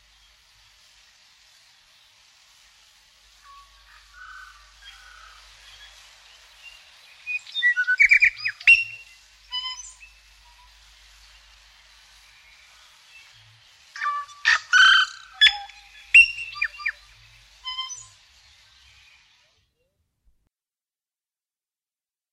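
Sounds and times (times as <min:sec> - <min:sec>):
tui calling in rainforest: 0:03.4 - 0:19.0.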